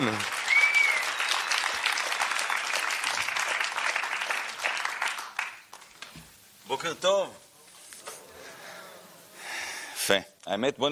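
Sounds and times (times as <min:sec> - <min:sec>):
loud stormy applause from a large audience: 0:00.0 - 0:06.2
speech: 0:06.8 - 0:07.4, 0:10.1 - 0:10.9.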